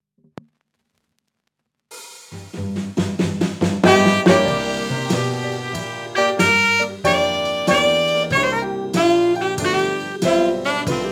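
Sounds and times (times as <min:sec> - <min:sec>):
gramophone burlesque music: 0:02.4 - 0:11.1.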